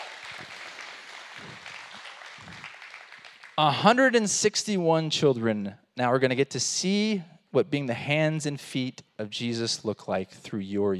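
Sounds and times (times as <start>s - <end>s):
audience clapping: 0.0s - 4.1s
speech: 3.6s - 10.9s.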